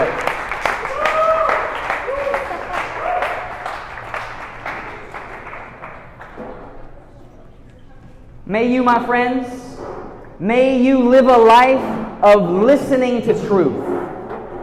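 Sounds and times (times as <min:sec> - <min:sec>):
audience applause: 0:00.0 - 0:06.9
high cheers and whoops: 0:00.7 - 0:03.8
speech: 0:08.5 - 0:09.6, 0:10.4 - 0:13.9.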